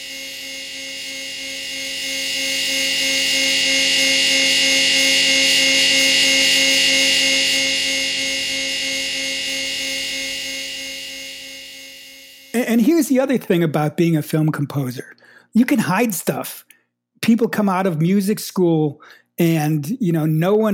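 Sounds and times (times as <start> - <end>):
harsh electrical buzz: 0.0 - 12.8
speech: 12.8 - 20.7.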